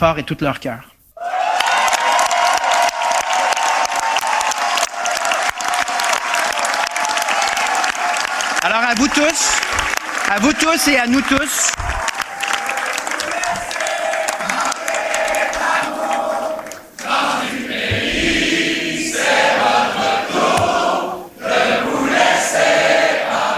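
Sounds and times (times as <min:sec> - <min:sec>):
speech: 0:00.0 - 0:00.9, 0:08.6 - 0:11.8
cheering and applause: 0:01.2 - 0:17.2
large crowd singing an anthem: 0:13.2 - 0:23.5.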